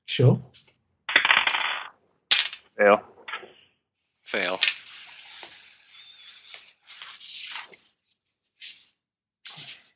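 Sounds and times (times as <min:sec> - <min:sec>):
speech: 0:00.2 - 0:00.7, 0:02.8 - 0:03.1, 0:04.3 - 0:04.8
dice rolled for a tabletop horror role-playing game: 0:01.1 - 0:02.7.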